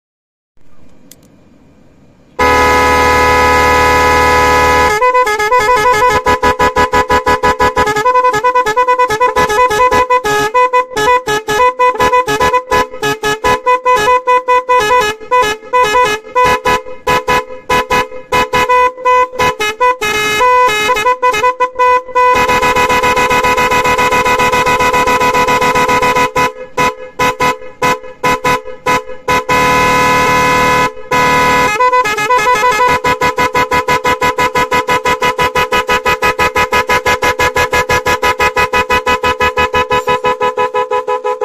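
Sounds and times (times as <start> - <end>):
horn: 2.4 - 41.4.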